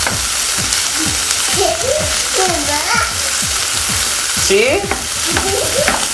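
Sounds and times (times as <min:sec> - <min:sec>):
sausages sizzling in a pan: 0:00.0 - 0:06.1.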